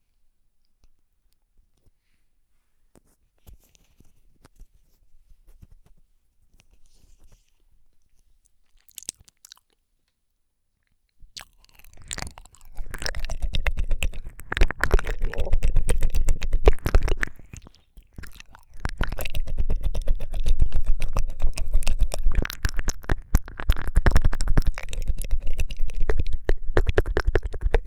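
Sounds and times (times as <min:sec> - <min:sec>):
ASMR ear licking: 0:11.4 - 0:27.8.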